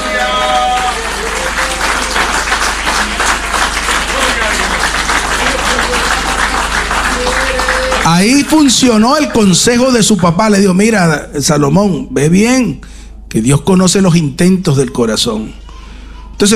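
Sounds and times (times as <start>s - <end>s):
audience applause: 0.0s - 9.0s
speech: 8.1s - 15.6s, 16.4s - 16.5s.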